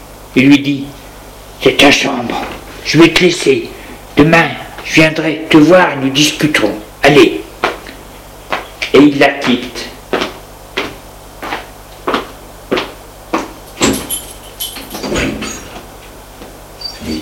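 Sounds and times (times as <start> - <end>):
speech: 0.4 - 1.0, 1.6 - 7.4, 8.9 - 9.9
door closing: 13.8 - 15.8.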